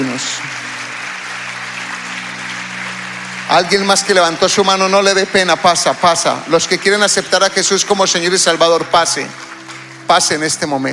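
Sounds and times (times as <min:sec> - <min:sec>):
audience applause: 0:00.0 - 0:10.9
speech: 0:00.2 - 0:00.7, 0:03.5 - 0:09.5, 0:10.1 - 0:10.9.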